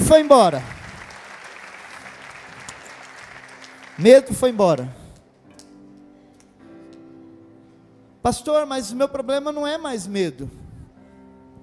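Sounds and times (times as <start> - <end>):
audience applause: 0.0 - 4.9
speech: 0.1 - 0.8, 4.0 - 5.0, 8.2 - 10.6.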